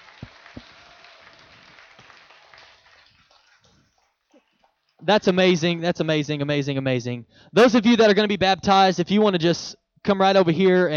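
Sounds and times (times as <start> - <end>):
audience clapping hands: 0.0 - 5.3
speech: 5.0 - 10.9.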